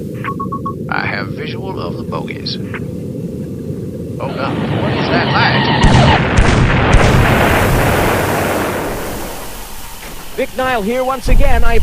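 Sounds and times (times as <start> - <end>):
speech: 1.4 - 3.1, 4.2 - 6.3, 10.4 - 11.8
explosions: 4.3 - 10.4.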